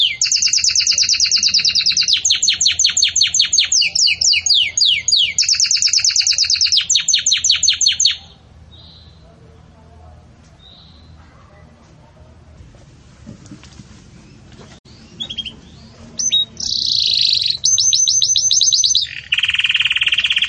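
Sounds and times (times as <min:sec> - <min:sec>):
Belgian canary song: 0:00.0 - 0:09.4, 0:10.6 - 0:11.2, 0:14.1 - 0:20.4.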